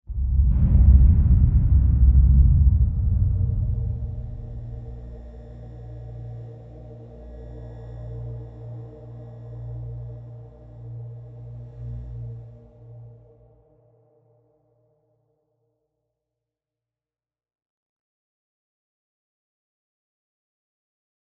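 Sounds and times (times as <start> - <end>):
dark scary exploration mood music: 0.1 - 13.8.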